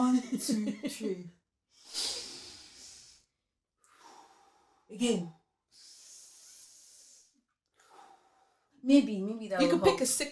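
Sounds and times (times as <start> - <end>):
speech: 0.3 - 2.1, 4.9 - 5.4, 8.8 - 10.3
deep breath in: 1.8 - 4.9, 5.7 - 8.7.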